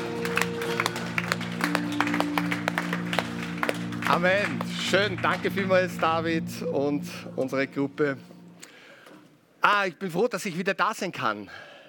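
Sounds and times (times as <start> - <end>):
applause: 0.0 - 6.4
speech: 4.1 - 8.3, 9.6 - 11.7.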